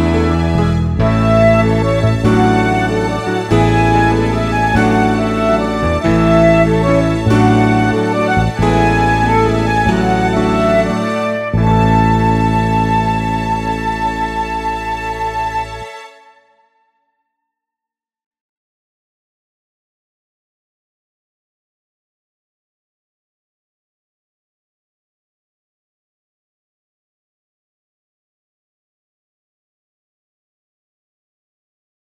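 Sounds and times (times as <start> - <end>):
instrumental backing track without melody: 0.0 - 16.4.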